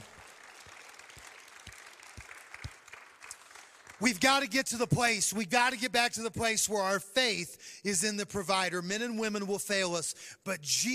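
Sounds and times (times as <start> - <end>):
audience clapping hands: 0.0 - 5.0
speech: 4.0 - 10.9.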